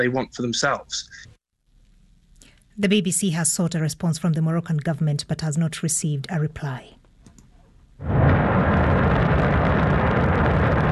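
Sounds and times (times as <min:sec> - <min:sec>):
speech: 0:00.0 - 0:01.3, 0:02.8 - 0:07.0, 0:08.0 - 0:08.2
Shenzhou 23 rocket blasting off from the Jingguan Launch Center in Inner Mongolia: 0:08.0 - 0:10.9.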